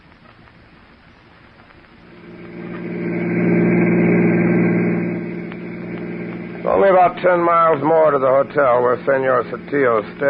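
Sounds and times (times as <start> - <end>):
car engine running while driving: 2.0 - 10.2
speech: 7.2 - 10.2.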